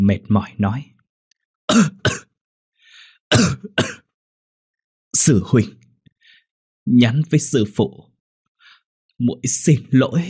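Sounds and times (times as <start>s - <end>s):
speech: 0.0s - 0.9s, 1.7s - 2.1s, 3.3s - 4.0s, 5.2s - 5.8s, 6.9s - 8.1s, 9.2s - 10.2s
coughing: 1.7s - 2.4s, 3.3s - 4.2s.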